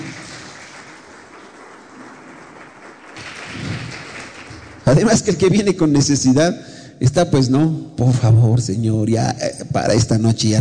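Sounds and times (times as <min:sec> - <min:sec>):
audience applause: 0:00.0 - 0:05.3
speech: 0:04.9 - 0:10.5.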